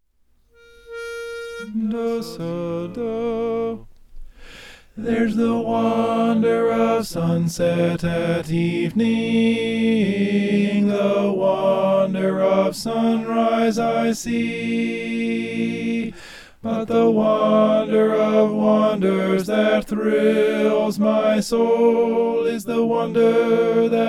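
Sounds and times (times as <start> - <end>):
tenor singing: 0.5 - 4.0, 5.0 - 24.0.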